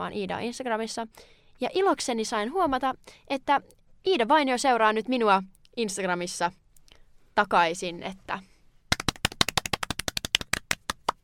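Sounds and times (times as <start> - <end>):
speech: 0.0 - 6.6, 7.4 - 8.5
hand clapping: 8.9 - 11.2.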